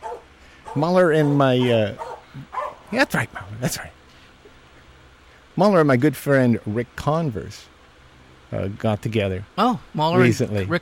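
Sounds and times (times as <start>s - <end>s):
happy dog barking: 0.0s - 3.6s
speech: 0.7s - 4.0s, 5.6s - 7.7s, 8.5s - 10.8s.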